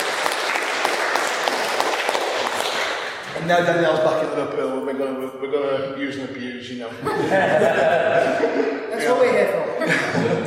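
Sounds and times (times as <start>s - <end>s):
group of people clapping: 0.0s - 3.8s
speech: 3.4s - 10.4s
laughter: 6.9s - 10.4s.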